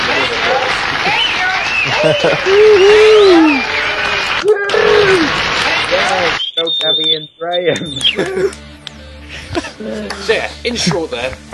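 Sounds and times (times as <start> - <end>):
applause in stage audio recording: 0.0 - 7.1, 7.8 - 8.6
laughter: 1.7 - 3.6, 7.7 - 8.7, 9.3 - 11.3
speech: 2.0 - 3.8, 6.6 - 8.7, 9.5 - 11.5.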